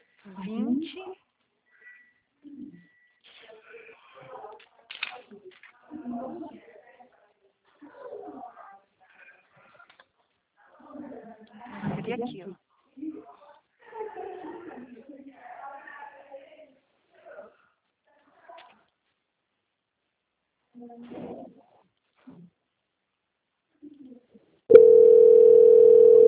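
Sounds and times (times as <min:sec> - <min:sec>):
telephone tone: 0:24.7 - 0:26.2.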